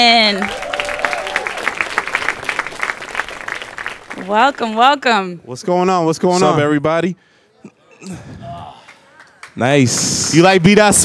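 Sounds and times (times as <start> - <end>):
speech: 0.0 - 0.6, 4.2 - 8.8, 9.6 - 11.0
audience applause welcoming hosts onto the stage at a live show: 0.2 - 4.9, 8.8 - 11.0.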